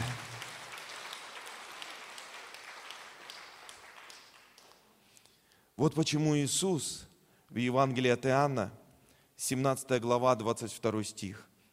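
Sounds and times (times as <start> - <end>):
audience applause: 0.0 - 4.8
speech: 5.8 - 8.8, 9.4 - 11.5.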